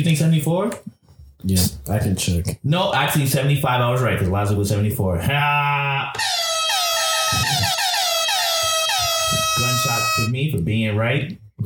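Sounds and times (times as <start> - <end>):
speech: 0.0 - 6.4, 9.6 - 11.6
air horn sound effect: 6.2 - 10.3.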